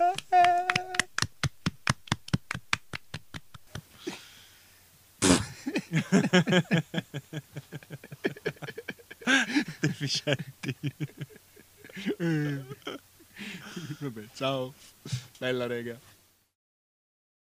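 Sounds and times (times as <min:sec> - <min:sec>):
hands clapping: 0:00.0 - 0:03.8
laughter: 0:05.3 - 0:14.3
speech: 0:05.9 - 0:08.3, 0:10.0 - 0:11.4, 0:14.0 - 0:16.1.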